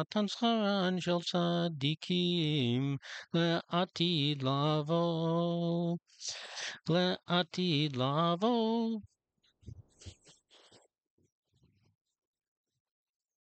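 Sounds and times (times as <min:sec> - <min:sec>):
person singing: 0:00.0 - 0:09.1.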